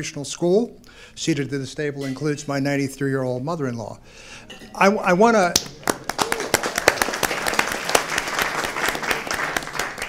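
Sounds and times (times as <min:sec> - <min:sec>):
speech: 0:00.0 - 0:06.1
audience applause: 0:05.8 - 0:10.0.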